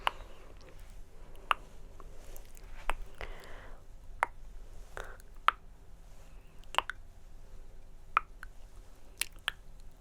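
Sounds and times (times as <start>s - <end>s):
tongue clicks: 0.0s - 3.3s, 4.2s - 4.4s, 5.0s - 5.7s, 6.6s - 7.0s, 8.2s - 8.6s, 9.2s - 9.9s
wet squishy mouth sounds: 0.0s - 3.4s, 6.6s - 7.0s, 8.2s - 9.9s
faint steady low hum: 0.0s - 9.9s.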